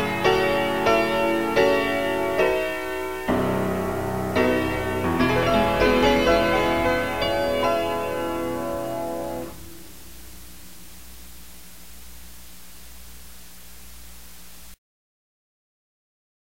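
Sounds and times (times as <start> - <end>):
piano: 0.0 - 12.4.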